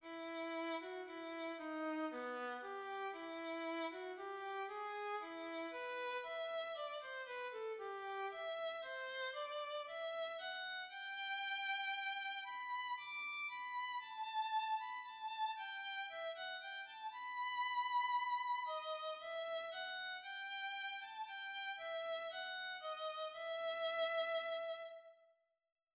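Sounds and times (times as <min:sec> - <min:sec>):
violin: 0:00.0 - 0:25.2.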